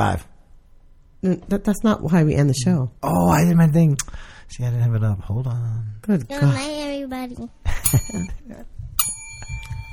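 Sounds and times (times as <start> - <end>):
speech: 0.0 - 0.3, 1.2 - 9.6
bicycle bell ringing: 7.8 - 9.9.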